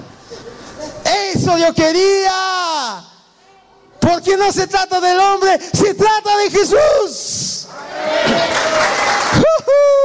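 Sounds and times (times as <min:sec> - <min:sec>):
speech: 0:01.4 - 0:03.1, 0:04.0 - 0:09.9
crowd shouting for joy: 0:07.7 - 0:10.0.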